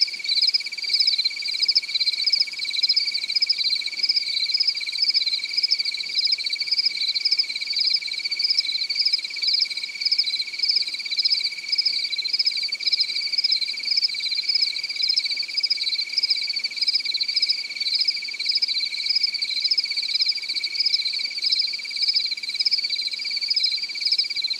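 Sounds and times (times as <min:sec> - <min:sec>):
cricket giving a pulsed trill: 0:00.0 - 0:24.5.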